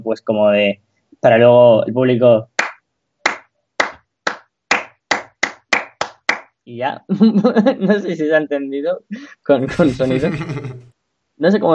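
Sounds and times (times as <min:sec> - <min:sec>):
speech: 0:00.1 - 0:02.5, 0:06.7 - 0:11.7
hands clapping: 0:02.6 - 0:06.6
laughter: 0:07.1 - 0:08.1, 0:09.6 - 0:10.9.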